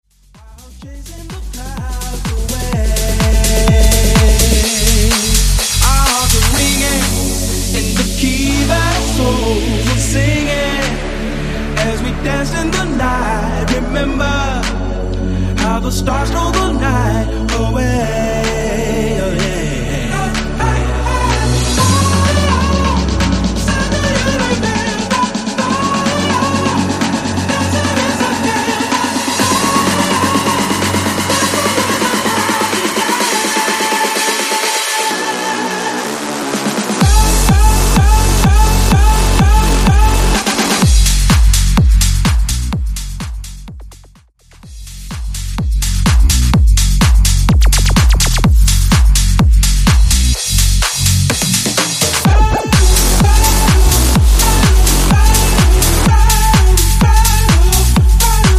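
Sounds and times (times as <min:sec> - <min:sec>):
70s tech house mashup: 0:00.0 - 0:14.9, 0:15.6 - 0:58.5.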